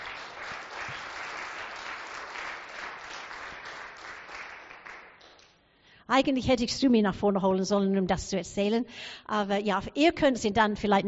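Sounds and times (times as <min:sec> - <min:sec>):
audience applause: 0:00.0 - 0:05.4
speech: 0:06.1 - 0:11.0.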